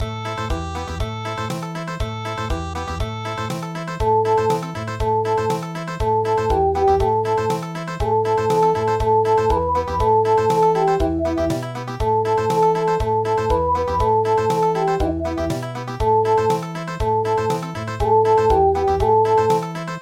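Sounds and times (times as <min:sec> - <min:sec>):
country music: 0:00.0 - 0:19.9.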